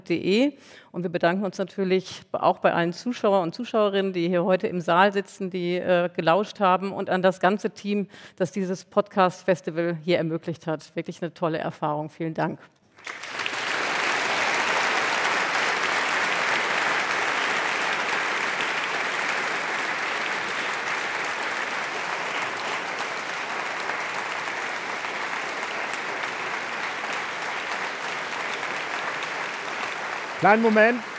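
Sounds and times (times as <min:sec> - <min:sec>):
speech: 0:00.1 - 0:13.3, 0:30.4 - 0:31.1
audience applause: 0:13.0 - 0:31.1.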